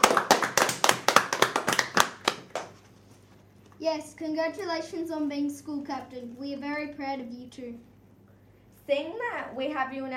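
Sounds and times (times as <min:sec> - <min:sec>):
audience clapping: 0:00.0 - 0:02.8
speech: 0:03.8 - 0:07.9, 0:08.9 - 0:10.1.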